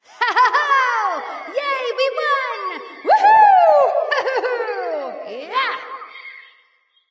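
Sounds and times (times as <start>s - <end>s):
laughter: 0.1s - 6.2s
person cheering yay: 3.0s - 4.1s.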